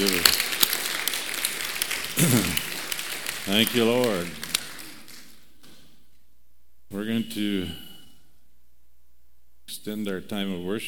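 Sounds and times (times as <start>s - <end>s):
audience clapping: 0.0s - 5.9s
speech: 2.2s - 2.6s, 3.5s - 4.4s, 6.9s - 7.8s, 9.8s - 10.8s.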